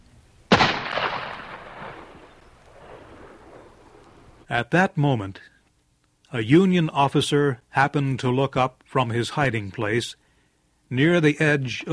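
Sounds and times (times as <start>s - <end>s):
gunshot fired from a clifftop above a valley in an audio drama: 0.5s - 3.7s
speech: 4.5s - 5.5s, 6.3s - 10.2s, 10.9s - 11.9s.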